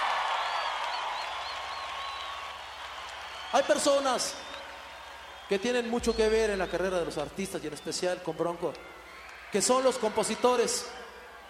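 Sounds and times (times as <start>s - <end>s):
crowd applauding: 0.0s - 11.4s
faint whistles: 0.4s - 9.5s
speech: 3.5s - 4.5s, 5.5s - 11.0s.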